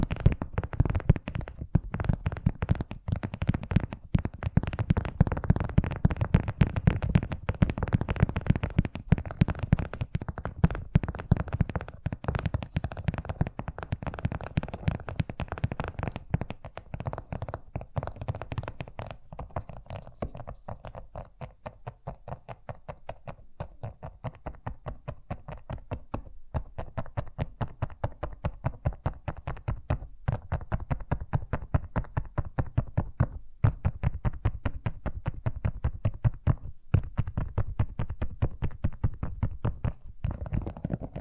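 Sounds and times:
fast tapping: 0.0 - 41.1.

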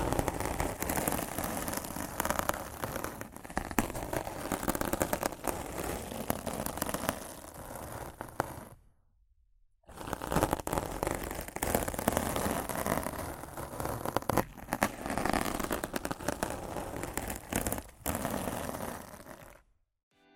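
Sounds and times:
rough scratching and brushing on a microphone: 0.0 - 8.8, 9.9 - 19.7.

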